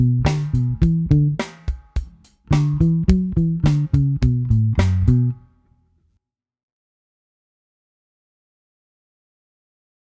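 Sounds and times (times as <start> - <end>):
R&B bass: 0.0 - 6.1.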